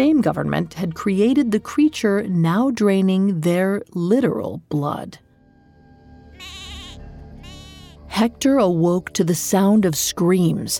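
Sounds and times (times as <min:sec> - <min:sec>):
speech: 0:00.0 - 0:05.2, 0:08.1 - 0:10.7
livestock bleating: 0:06.3 - 0:08.1.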